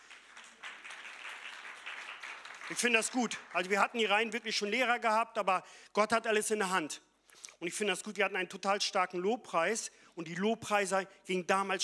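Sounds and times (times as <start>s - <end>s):
audience applause: 0.0s - 4.3s
speech: 2.7s - 11.8s.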